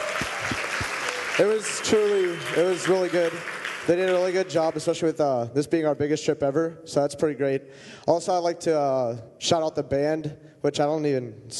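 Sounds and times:
audience applause: 0.0s - 5.0s
speech: 1.4s - 11.5s.

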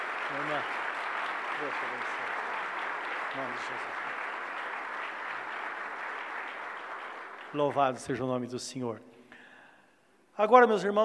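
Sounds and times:
audience applause: 0.0s - 8.4s
speech: 0.3s - 0.9s, 1.6s - 2.4s, 3.3s - 4.3s, 7.5s - 9.1s, 10.4s - 11.0s.

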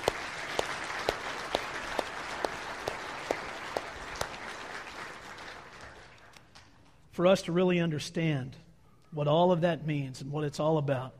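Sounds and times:
audience applause: 0.0s - 6.3s
speech: 7.2s - 11.1s.

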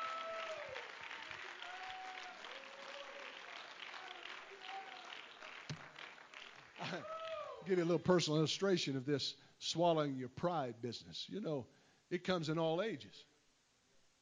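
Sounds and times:
audience clapping hands in praise: 0.0s - 7.8s
speech: 6.9s - 13.3s.

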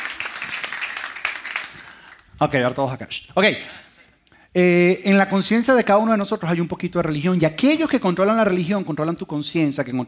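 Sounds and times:
audience applause: 0.0s - 2.2s
speech: 2.4s - 3.9s, 4.5s - 10.0s.

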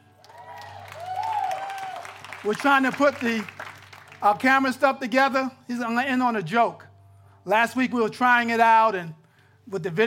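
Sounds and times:
audience clapping: 0.0s - 4.6s
sustained whooping cheers: 0.2s - 2.4s
speech: 2.4s - 3.6s, 4.2s - 6.8s, 7.4s - 10.0s.

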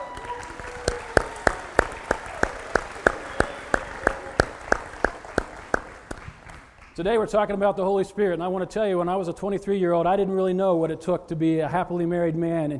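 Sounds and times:
audience clapping in unison: 0.0s - 7.2s
speech: 7.0s - 12.7s.

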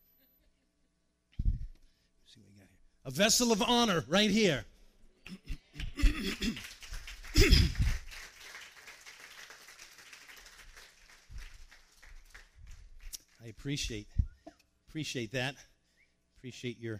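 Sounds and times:
speech: 2.3s - 4.7s, 13.6s - 14.2s, 14.9s - 15.7s, 16.4s - 16.9s
audience clapping: 5.3s - 13.5s.

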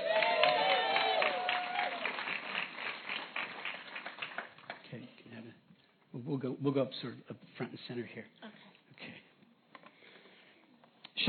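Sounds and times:
audience clapping: 0.0s - 5.2s
speech: 6.3s - 8.4s.

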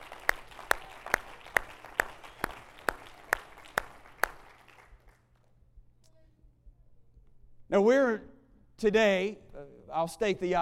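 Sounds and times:
audience clapping in rhythm: 0.0s - 5.4s
speech: 7.7s - 10.6s.

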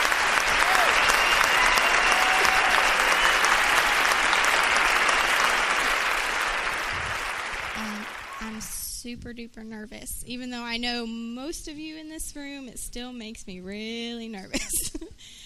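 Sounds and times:
crowd applause: 0.0s - 8.7s
faint whoops: 0.5s - 4.2s
speech: 9.1s - 14.9s.

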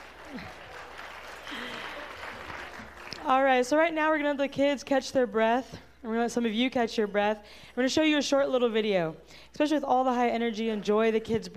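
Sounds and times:
audience applause: 0.0s - 3.2s
speech: 0.3s - 0.6s, 3.2s - 11.5s.

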